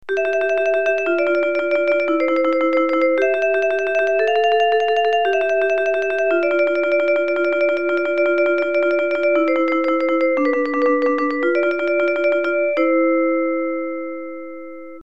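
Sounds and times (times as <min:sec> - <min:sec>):
marimba: 0:00.2 - 0:13.8.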